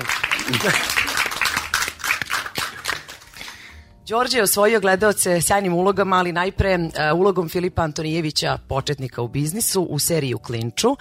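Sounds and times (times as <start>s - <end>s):
studio audience applause greeting an actor: 0.0s - 3.7s
speech: 0.5s - 1.1s, 4.1s - 11.0s.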